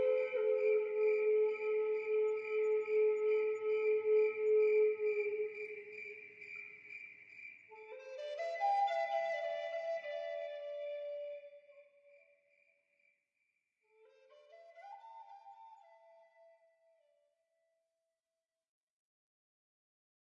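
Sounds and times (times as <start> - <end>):
relaxing Native American flute music: 0.0 - 6.9, 7.6 - 12.3, 13.9 - 17.3.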